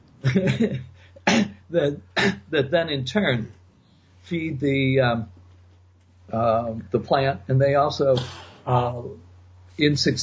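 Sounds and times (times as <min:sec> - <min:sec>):
speech: 0:00.2 - 0:03.6, 0:04.2 - 0:05.4, 0:06.3 - 0:09.2, 0:09.8 - 0:10.2
person coughing: 0:01.2 - 0:01.6, 0:02.2 - 0:02.4, 0:08.2 - 0:08.6.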